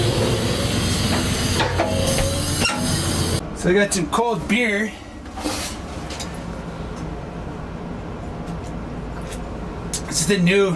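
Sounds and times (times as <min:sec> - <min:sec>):
freight train engine moving off: 0:00.0 - 0:10.0
clanks: 0:01.1 - 0:03.0
speech: 0:03.6 - 0:05.6, 0:10.3 - 0:10.7.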